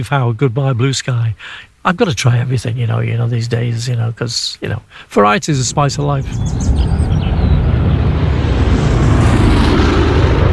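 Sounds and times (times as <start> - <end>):
speech: 0.0 - 7.0
airplane in the sky: 5.6 - 10.5.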